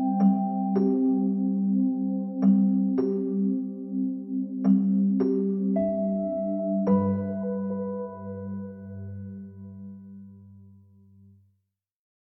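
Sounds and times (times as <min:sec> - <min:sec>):
relaxing piano music: 0:00.0 - 0:11.3.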